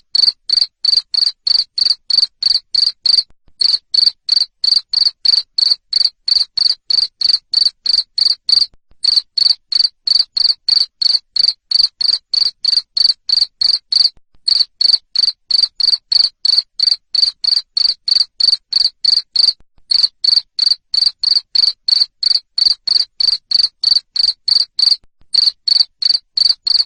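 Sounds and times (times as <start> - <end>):
cricket chirping: 0.2 - 26.8.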